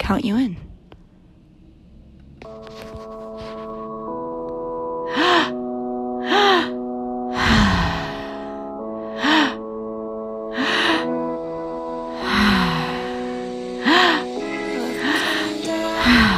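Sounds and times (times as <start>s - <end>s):
soft sustained instrumental music: 1.6s - 16.3s
deep breathing exercise: 5.0s - 16.3s.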